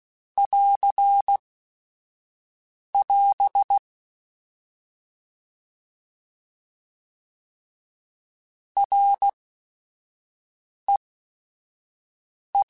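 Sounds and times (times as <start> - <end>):
Morse code beeps: 0.4 - 1.4, 3.0 - 3.8, 8.8 - 9.4.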